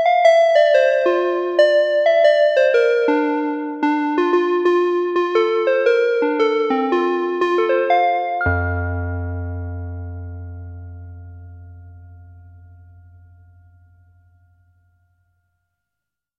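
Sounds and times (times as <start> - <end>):
vibraphone: 0.0 - 12.7.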